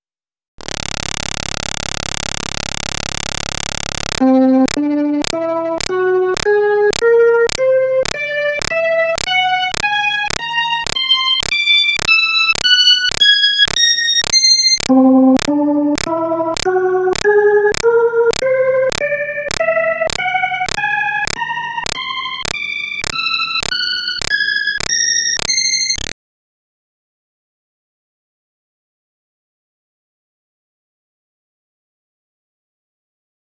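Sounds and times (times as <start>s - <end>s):
Hammond B3 organ: 4.2s - 26.0s.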